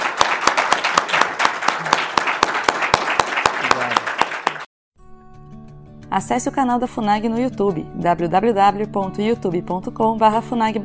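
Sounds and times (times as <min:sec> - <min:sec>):
audience applause: 0:00.0 - 0:04.7
speech: 0:06.2 - 0:10.8.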